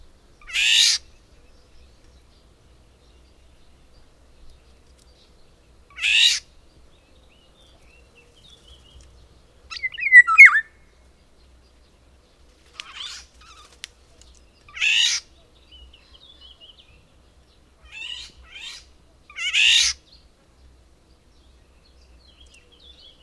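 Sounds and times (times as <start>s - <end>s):
low background hiss: 0.0s - 23.2s
bird giving harsh rasping screech-like bursts: 0.5s - 1.0s, 6.0s - 6.4s, 9.7s - 10.7s, 14.8s - 15.2s, 19.4s - 20.0s.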